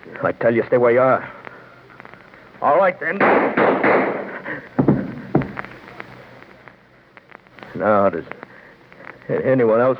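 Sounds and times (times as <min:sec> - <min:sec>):
speech: 0:00.2 - 0:01.4, 0:02.6 - 0:04.1, 0:07.8 - 0:08.4, 0:09.3 - 0:09.9
gunshots during a holdup over money: 0:03.1 - 0:05.8.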